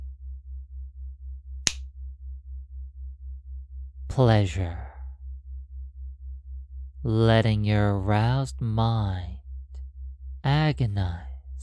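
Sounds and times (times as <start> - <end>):
finger snap: 1.7 - 1.9
speech: 4.1 - 4.8, 7.0 - 9.4, 10.4 - 11.6.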